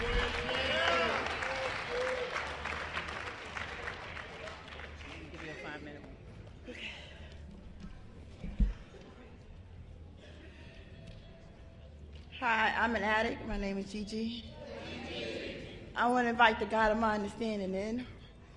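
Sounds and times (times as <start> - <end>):
people cheering: 0.0 - 4.5
audience applause welcoming a speaker at a meeting: 0.0 - 5.9
speech: 12.5 - 14.5, 16.0 - 18.2.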